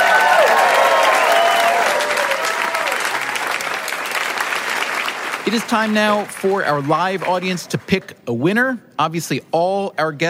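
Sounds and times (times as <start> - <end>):
live audience applause for the guests: 0.0 - 7.9
speech: 5.5 - 10.2.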